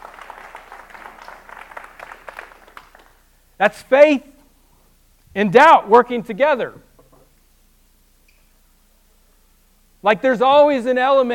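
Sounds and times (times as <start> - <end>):
audience applause: 0.0 - 3.3
speech: 3.6 - 4.3, 5.3 - 6.9, 10.0 - 11.3.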